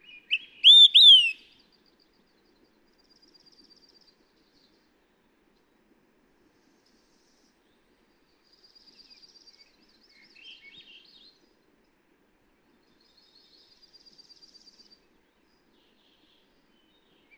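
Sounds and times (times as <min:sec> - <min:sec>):
Olive-sided Flycatcher calling: 0:00.3 - 0:01.4.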